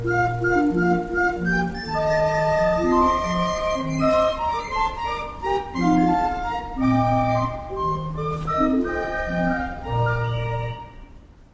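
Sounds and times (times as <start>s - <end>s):
barrel organ: 0.0s - 11.2s.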